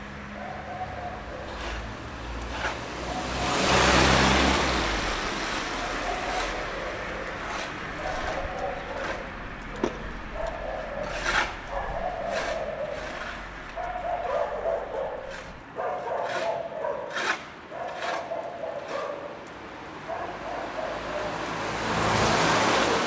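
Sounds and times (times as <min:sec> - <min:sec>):
street sounds in Bucharest: 0:00.0 - 0:23.0
dog barking: 0:00.4 - 0:01.6, 0:05.8 - 0:13.2, 0:13.8 - 0:21.4.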